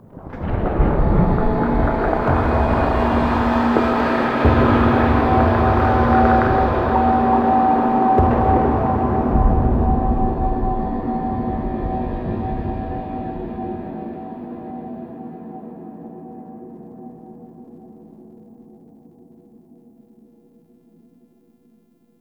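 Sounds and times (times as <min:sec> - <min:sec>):
space ambience intro: 0:00.2 - 0:14.7.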